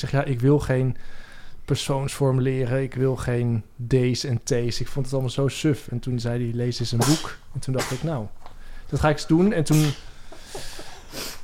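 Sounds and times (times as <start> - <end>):
speech: 0.0 - 11.2
sneeze: 7.0 - 8.2, 9.7 - 10.0.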